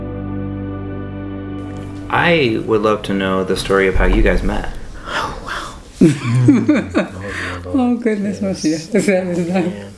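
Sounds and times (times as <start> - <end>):
speech: 2.1 - 4.8, 6.0 - 9.9
person yawning: 5.0 - 5.9
laughter: 6.0 - 7.6.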